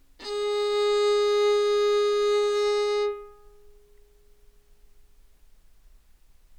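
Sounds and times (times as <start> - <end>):
baroque viola playing, anechoic: 0.2 - 3.7.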